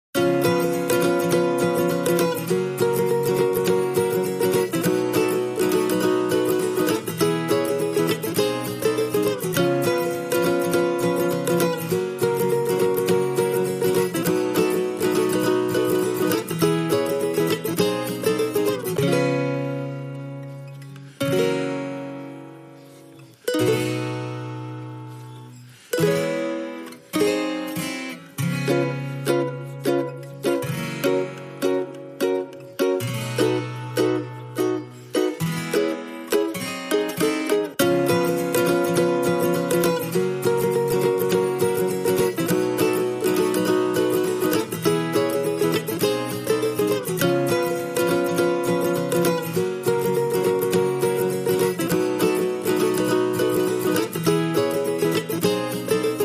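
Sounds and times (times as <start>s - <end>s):
guitars playing: 0.0s - 56.2s.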